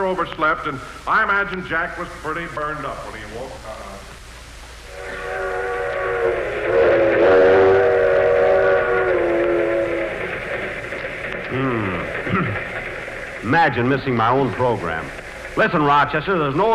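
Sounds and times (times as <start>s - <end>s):
speech: 0.0s - 4.1s, 13.4s - 16.7s
train rumbling: 0.0s - 16.7s
steam whistle blowing: 4.8s - 10.8s.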